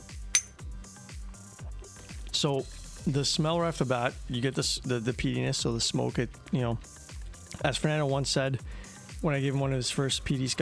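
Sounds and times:
whiskey glasses clinking in a toast: 0:00.4 - 0:00.6
speech: 0:02.4 - 0:10.5.

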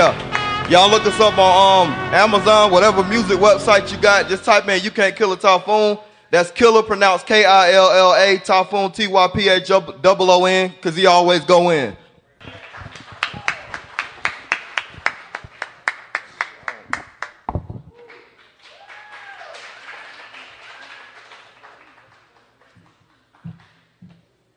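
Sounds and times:
speech: 0:00.1 - 0:12.0
audience clapping: 0:12.4 - 0:24.2.

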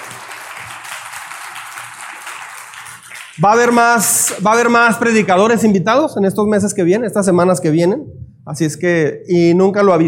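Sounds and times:
applause: 0:00.0 - 0:04.8
speech: 0:03.4 - 0:10.0.

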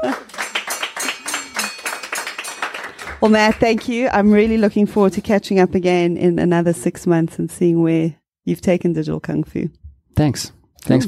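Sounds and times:
rhythmic clapping: 0:00.0 - 0:05.0
speech: 0:03.2 - 0:11.0.

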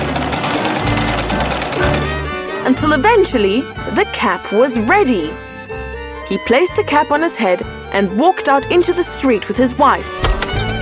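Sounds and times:
tailor's sewing machine stitching a cap: 0:00.0 - 0:02.8, 0:10.1 - 0:10.8
speech: 0:02.7 - 0:05.5, 0:06.3 - 0:10.3.

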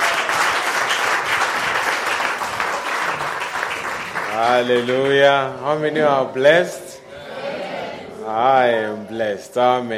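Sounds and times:
audience applause: 0:00.0 - 0:05.5
speech: 0:04.4 - 0:06.8, 0:08.4 - 0:09.9.

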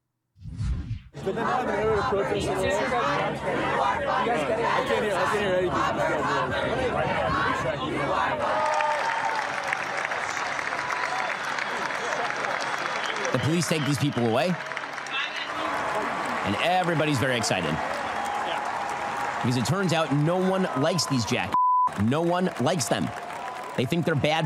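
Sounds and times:
speech: 0:01.2 - 0:08.6, 0:13.4 - 0:14.8, 0:16.5 - 0:18.0, 0:19.4 - 0:23.2, 0:23.8 - 0:24.4
crowd cheering at graduation: 0:08.2 - 0:24.4.

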